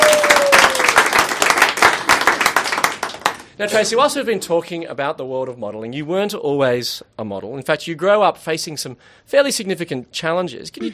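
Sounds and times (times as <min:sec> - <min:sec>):
audience applause: 0:00.0 - 0:03.6
speech: 0:03.6 - 0:10.9.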